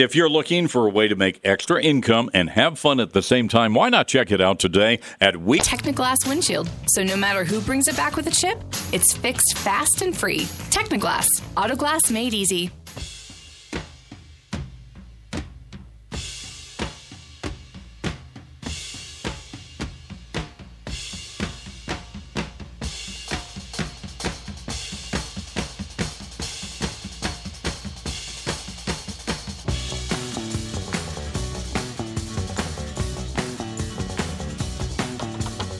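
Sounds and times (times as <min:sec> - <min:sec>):
speech: 0:00.0 - 0:13.1
rock bumper music with full band: 0:05.6 - 0:13.8, 0:20.6 - 0:35.7.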